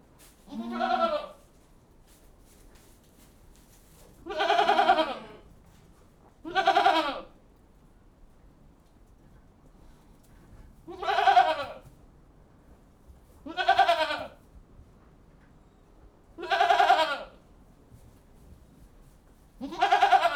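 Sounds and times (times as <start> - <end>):
goats bleating inside a goat house: 0.5 - 1.4, 4.2 - 5.4, 6.4 - 7.3, 10.9 - 11.8, 13.4 - 14.4, 16.4 - 17.4, 19.6 - 20.3.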